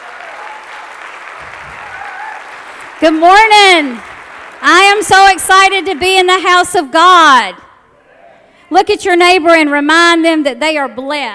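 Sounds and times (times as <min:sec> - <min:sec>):
church congregation applauding to welcome Pastor Lisa: 0:00.0 - 0:06.6
speech: 0:03.0 - 0:07.6, 0:08.7 - 0:11.3.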